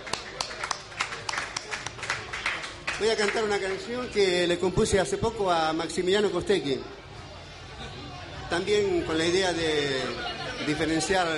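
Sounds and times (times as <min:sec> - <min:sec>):
sparse audience clapping at a commemoration of the Avellaneda massacre: 0:00.0 - 0:03.8
speech: 0:03.0 - 0:07.0, 0:08.5 - 0:11.3.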